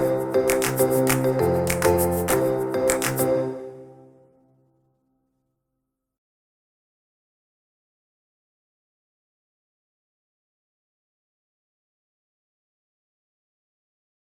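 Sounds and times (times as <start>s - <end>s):
happy upbeat background music: 0.0s - 4.2s.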